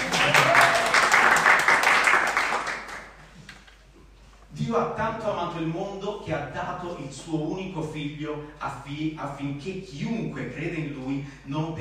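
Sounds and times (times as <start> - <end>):
audience applause: 0.0 - 3.2
speech: 4.8 - 11.7.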